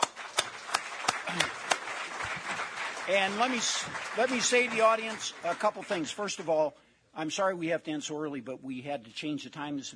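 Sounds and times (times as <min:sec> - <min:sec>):
audience applauding a panel after a policy discussion: 0:00.0 - 0:06.6
speech: 0:01.3 - 0:01.5, 0:03.1 - 0:09.9.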